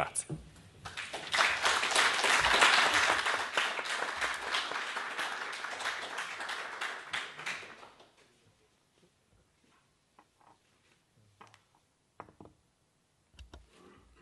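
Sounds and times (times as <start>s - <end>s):
speech: 0.0s - 0.4s
audience applause: 0.8s - 8.3s.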